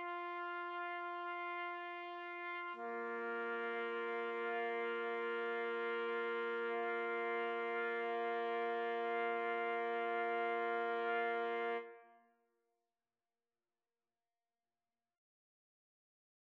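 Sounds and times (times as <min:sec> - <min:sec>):
trumpet trio playing: 0:00.0 - 0:11.9.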